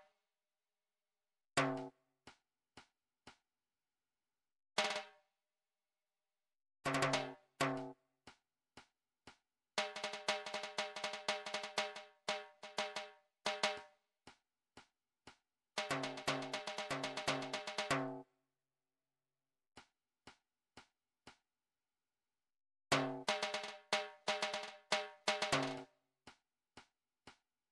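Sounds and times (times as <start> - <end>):
drum track: 1.6 - 1.9, 6.9 - 7.9, 9.8 - 13.9, 15.8 - 18.2, 22.9 - 25.9.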